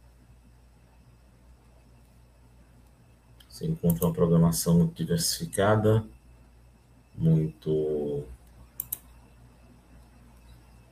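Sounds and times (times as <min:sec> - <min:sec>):
computer mouse clicks: 0:02.8 - 0:04.2, 0:08.4 - 0:09.2
speech: 0:03.6 - 0:06.2, 0:07.2 - 0:08.4.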